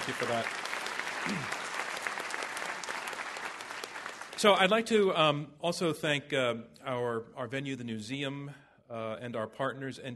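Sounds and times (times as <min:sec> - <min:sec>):
audience applause: 0:00.0 - 0:04.8
speech: 0:00.1 - 0:00.6, 0:01.2 - 0:01.6, 0:04.4 - 0:10.1.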